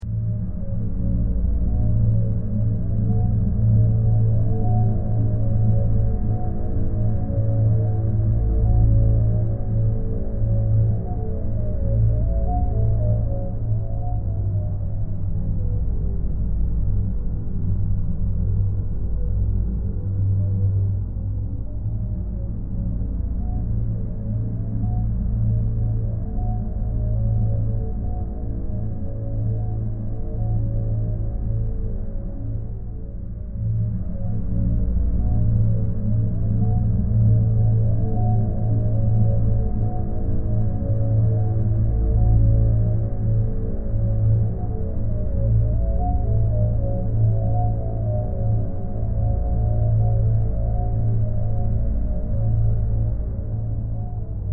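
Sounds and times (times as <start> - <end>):
ambience: 0.0 - 54.5.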